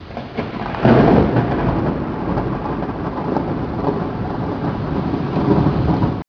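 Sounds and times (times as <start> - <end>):
lightning strike: 0.0 - 6.2.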